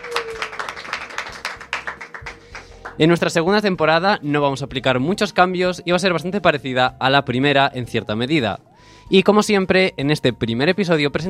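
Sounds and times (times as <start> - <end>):
hand clapping: 0.0 - 3.1
speech: 3.0 - 11.2.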